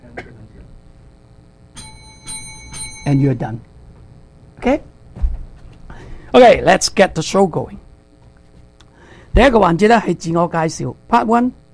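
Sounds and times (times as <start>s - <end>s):
countdown clock bell chime: 1.8s - 3.6s
speech: 3.1s - 3.7s, 4.6s - 4.9s, 6.3s - 7.8s, 9.3s - 11.7s.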